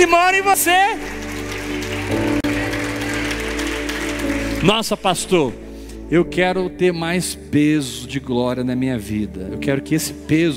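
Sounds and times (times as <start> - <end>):
speech: 0.0 - 1.3, 4.6 - 10.5
audience applause: 0.0 - 5.5.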